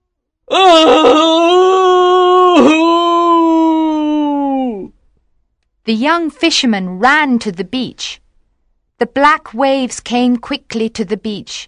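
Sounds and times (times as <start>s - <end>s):
person performing an anguished wail: 0.5s - 4.9s
speech: 5.9s - 8.2s, 9.0s - 11.6s.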